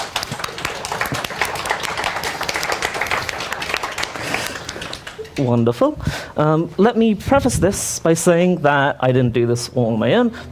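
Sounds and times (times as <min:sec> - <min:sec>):
crowd applause: 0:00.0 - 0:05.6
speech: 0:05.4 - 0:10.5.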